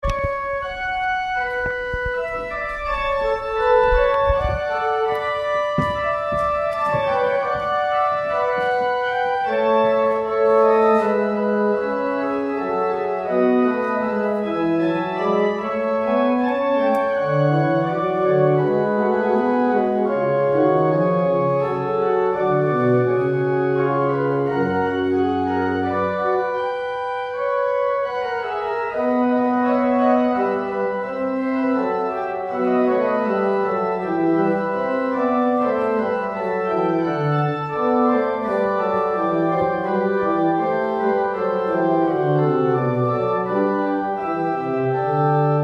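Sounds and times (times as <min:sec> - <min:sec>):
organ postlude: 0:00.0 - 0:45.6.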